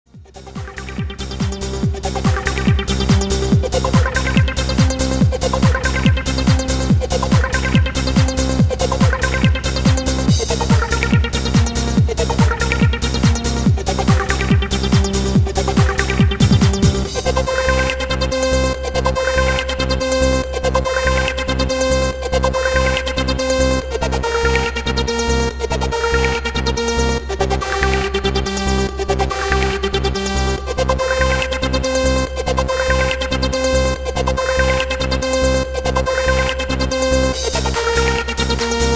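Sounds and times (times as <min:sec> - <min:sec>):
trance music: 0:00.1 - 0:38.9.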